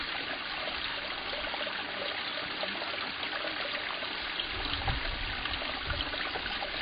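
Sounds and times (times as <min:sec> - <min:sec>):
water: 0:00.0 - 0:06.7.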